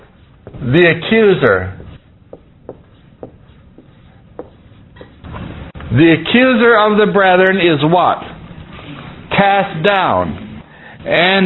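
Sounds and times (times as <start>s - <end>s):
scratchy writing strokes on a board: 0.0s - 5.6s
low hum: 0.0s - 11.4s
speech: 0.7s - 1.8s, 6.0s - 8.3s, 9.4s - 10.4s, 11.0s - 11.4s.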